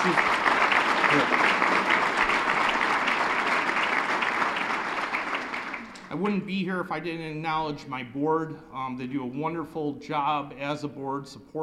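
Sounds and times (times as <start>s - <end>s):
audience applause: 0.0s - 6.1s
speech: 1.1s - 1.4s, 6.2s - 11.6s.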